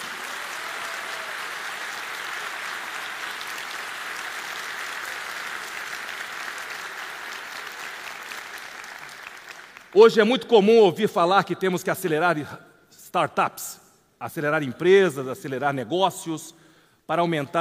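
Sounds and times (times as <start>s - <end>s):
applause: 0.0s - 10.2s
speech: 10.0s - 17.5s.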